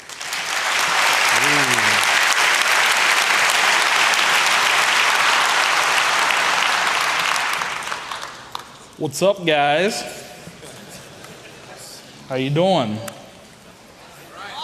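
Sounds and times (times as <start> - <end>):
audience applause: 0.0 - 8.9
speech: 9.0 - 10.2, 12.3 - 13.1.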